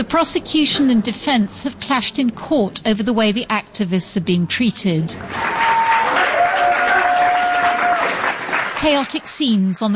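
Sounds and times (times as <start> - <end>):
speech: 0.0 - 5.7, 8.8 - 9.9
supporters cheering and shouting in courtroom: 5.2 - 8.3
scattered clapping: 5.2 - 9.4.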